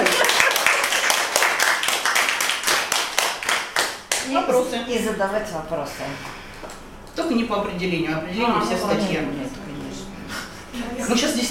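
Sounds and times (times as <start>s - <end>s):
audience clapping: 0.0s - 4.3s
speech: 4.3s - 6.4s, 7.2s - 9.6s, 11.1s - 11.4s.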